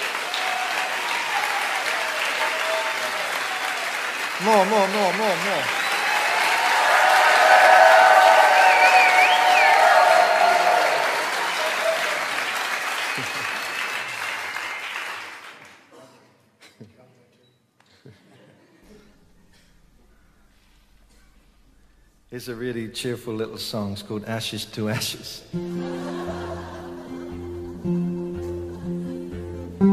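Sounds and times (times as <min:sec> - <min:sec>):
audience applause: 0:00.0 - 0:15.9
speech: 0:04.4 - 0:05.8, 0:22.4 - 0:26.3
laughter: 0:13.0 - 0:13.8, 0:25.0 - 0:29.8.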